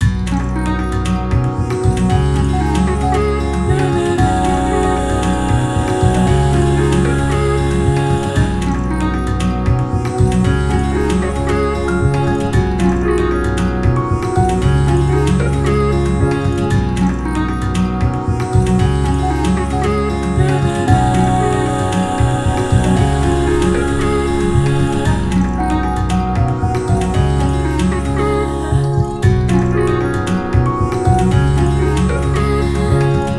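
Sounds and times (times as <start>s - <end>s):
guitar: 0.0s - 33.3s.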